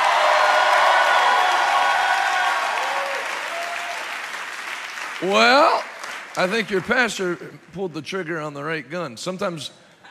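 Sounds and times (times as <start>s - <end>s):
congregation applauding at a West Virginia revival meeting: 0.0s - 7.8s
speech: 5.2s - 9.8s.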